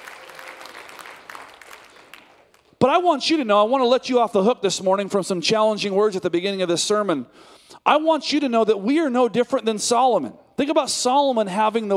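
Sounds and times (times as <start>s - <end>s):
church congregation applauding: 0.0s - 2.8s
speech: 2.8s - 11.9s.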